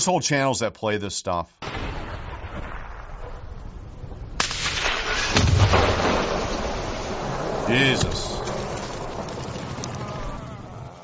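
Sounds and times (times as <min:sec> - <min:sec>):
speech: 0:00.0 - 0:01.8, 0:07.7 - 0:08.3
grenade explosions in frontline combat footage: 0:01.6 - 0:11.0
heavy rumbling roar after a grenade blast: 0:05.2 - 0:11.0.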